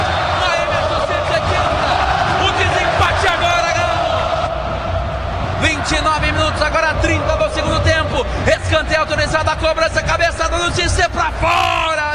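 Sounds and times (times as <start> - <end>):
football stadium crowd whistling chants: 0.0 - 8.5
football stadium crowd roaring and cheering: 0.0 - 12.1
speech: 8.2 - 12.1.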